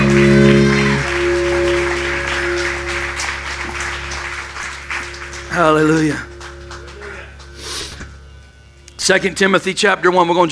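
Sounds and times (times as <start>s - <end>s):
audience applause: 0.0s - 7.8s
speech: 5.6s - 6.3s, 9.1s - 10.4s.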